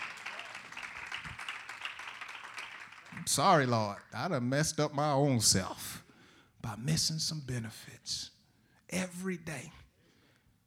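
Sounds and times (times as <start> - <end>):
church congregation clapping hands in praise during a sermon: 0.0 - 4.4
speech: 3.2 - 6.0, 6.6 - 8.3, 8.9 - 9.8.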